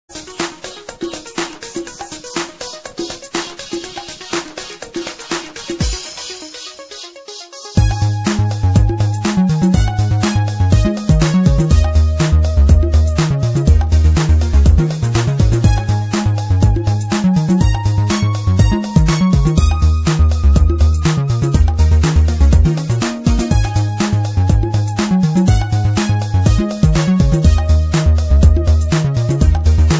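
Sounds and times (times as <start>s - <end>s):
1980s drum machine remake: 0.1s - 29.9s.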